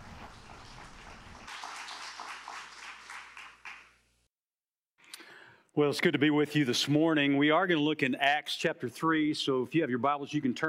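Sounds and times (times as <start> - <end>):
audience applause: 0.0 - 4.0
speech: 5.8 - 10.6.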